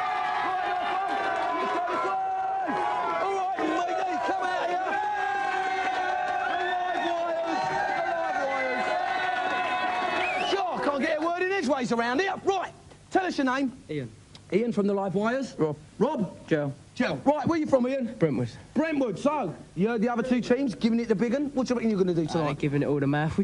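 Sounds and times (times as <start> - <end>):
crowd cheering: 0.0 - 11.4
speech: 11.8 - 23.4.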